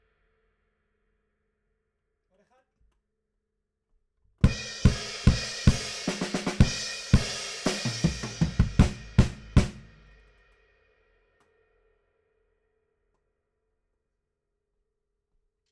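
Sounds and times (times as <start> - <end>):
bass drum: 4.4 - 10.1.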